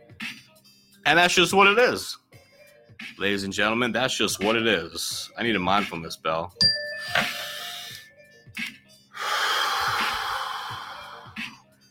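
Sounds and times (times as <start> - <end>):
speech: 1.1 - 2.2, 3.2 - 7.3
person taking a deep breath: 9.2 - 11.6.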